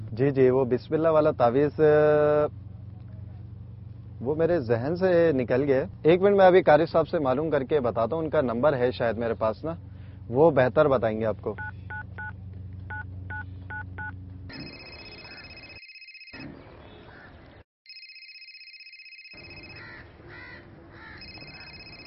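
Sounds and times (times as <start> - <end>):
speech: 0.2 - 2.6, 4.2 - 11.8
telephone keypad DTMF dialing beeps: 11.6 - 12.3, 12.9 - 16.4, 17.9 - 19.8, 21.2 - 22.0
electronic telephone ringing tone: 12.9 - 16.5, 17.9 - 20.0, 21.2 - 22.0.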